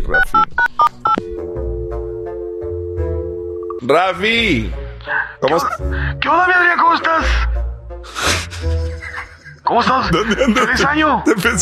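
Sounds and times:
steady electronic phone tone: 0.0s - 3.9s
speech: 3.9s - 4.8s, 5.4s - 7.5s, 9.7s - 11.5s
laughter: 5.4s - 6.2s, 8.1s - 11.5s.

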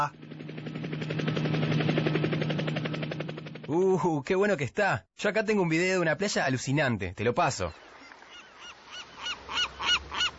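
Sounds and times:
speech: 0.0s - 0.2s, 3.7s - 7.9s
helicopter ringtone on a mobile phone: 0.0s - 3.8s.

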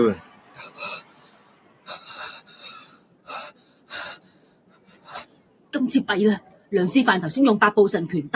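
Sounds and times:
speech: 0.0s - 1.0s, 5.8s - 8.3s
ragged breathing of a tired fighter in a cartoon: 1.9s - 5.3s.

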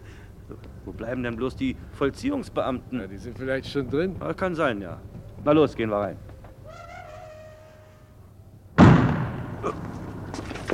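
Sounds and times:
speech: 0.9s - 6.3s
staged gunshot in a German radio drama: 8.8s - 9.9s.

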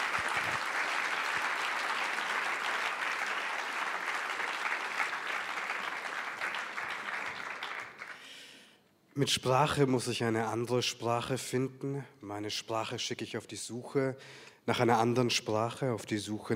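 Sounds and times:
audience applause at a literary event: 0.0s - 8.3s
speech: 9.2s - 16.5s.

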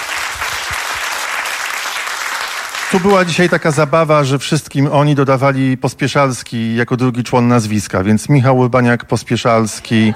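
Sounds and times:
audience applauding for a guest in the front row: 0.0s - 3.8s
speech: 2.9s - 10.1s
laughter: 9.5s - 10.1s.

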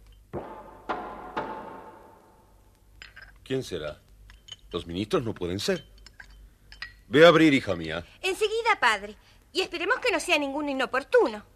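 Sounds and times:
firm knocks on a dining room door: 0.4s - 2.5s
speech: 3.5s - 4.0s, 4.7s - 5.9s, 7.1s - 11.5s.

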